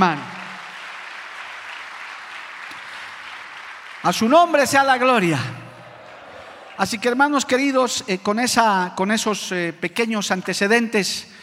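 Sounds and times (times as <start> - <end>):
speech: 0.0 - 0.3, 4.0 - 5.6, 6.8 - 11.4
audience applause: 0.0 - 7.6.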